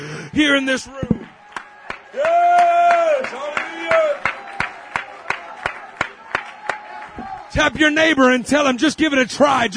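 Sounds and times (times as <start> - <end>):
speech: 0.4 - 1.2, 7.6 - 9.7
rhythmic hand clapping during a church service: 1.1 - 7.4.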